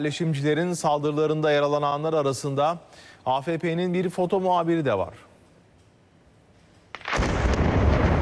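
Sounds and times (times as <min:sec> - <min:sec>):
speech: 0:00.0 - 0:05.3
explosives detonating inside a Palestinian house in Beitillu, West Bank: 0:07.0 - 0:08.1.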